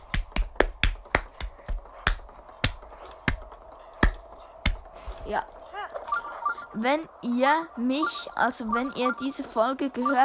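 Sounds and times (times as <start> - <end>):
host clapping hands: 0.0 - 4.8
speech: 5.3 - 5.6, 6.7 - 10.2.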